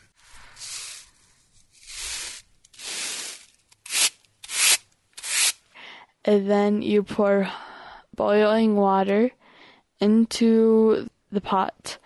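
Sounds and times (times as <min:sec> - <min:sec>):
sweeping ground corn into a basket: 0:00.0 - 0:05.6
speech: 0:06.3 - 0:07.6, 0:08.2 - 0:09.4, 0:10.0 - 0:11.9.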